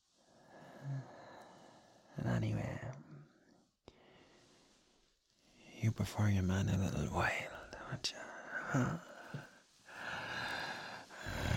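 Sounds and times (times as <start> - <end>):
speech: 2.4 - 3.0, 6.0 - 9.5
low breathy groaning with gasping exhalations: 8.6 - 11.5.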